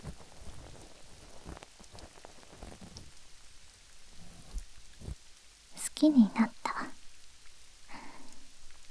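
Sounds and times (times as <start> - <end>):
steady rain: 0.0 - 8.9
speech: 6.0 - 6.6.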